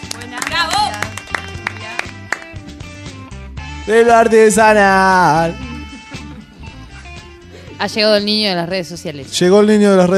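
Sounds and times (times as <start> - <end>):
applause: 0.0 - 2.7
speech: 3.9 - 5.6, 7.8 - 10.1.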